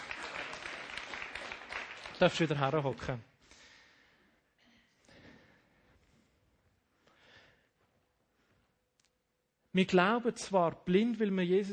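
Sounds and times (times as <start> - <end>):
crowd clapping: 0.0 - 3.3
speech: 2.2 - 3.3, 9.8 - 11.7.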